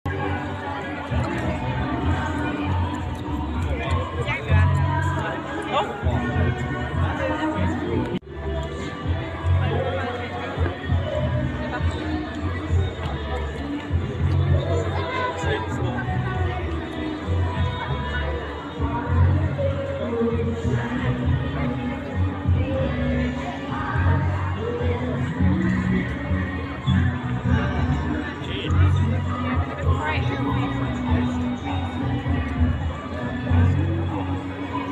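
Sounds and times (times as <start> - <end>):
large street crowd chatter downtown: 0.0 - 34.9.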